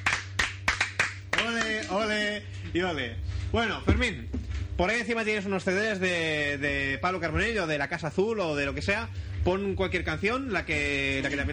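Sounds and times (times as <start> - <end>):
hand claps of applause at the close of a session: 0.0 - 2.0
speech: 1.9 - 11.5.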